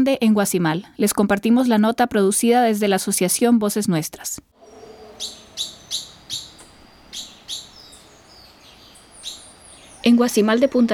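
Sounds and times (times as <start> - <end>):
speech: 0.0 - 5.7, 10.0 - 10.9
tropical forest birds singing at dawn: 4.6 - 10.9.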